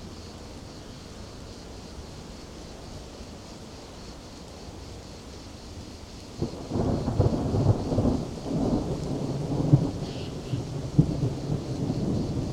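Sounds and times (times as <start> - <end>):
crickets in daytime: 0.0 - 12.5
daytime thunder: 6.4 - 12.5.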